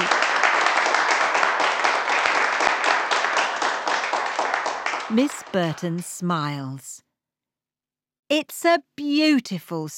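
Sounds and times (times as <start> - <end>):
children clapping: 0.0 - 6.1
speech: 5.1 - 6.9, 8.3 - 9.9.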